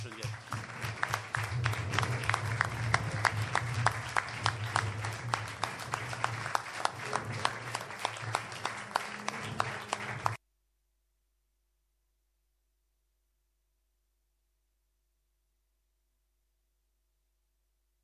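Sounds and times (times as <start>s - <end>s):
audience applause: 0.0s - 10.4s.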